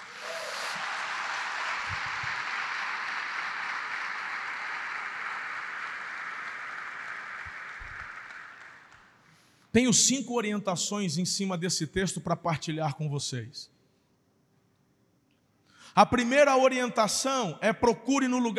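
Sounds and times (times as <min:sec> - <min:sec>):
crowd applauding: 0:00.0 - 0:09.6
speech: 0:09.8 - 0:13.8, 0:16.0 - 0:18.5.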